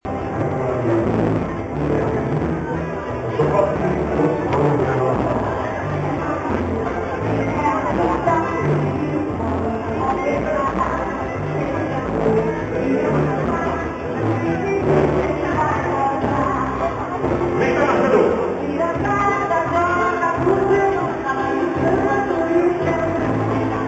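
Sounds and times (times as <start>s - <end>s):
French music on Bastille Day: 0.0s - 23.8s.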